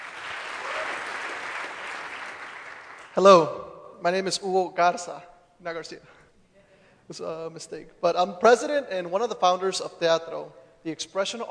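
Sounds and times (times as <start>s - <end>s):
audience clapping hands: 0.0s - 3.5s
speech: 3.2s - 6.2s, 7.1s - 11.4s.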